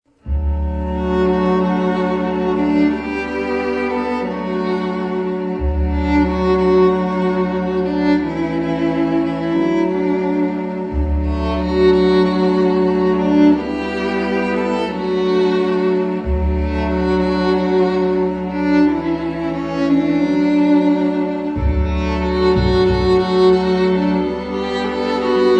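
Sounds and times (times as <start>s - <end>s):
string quartet: 0.1s - 25.5s.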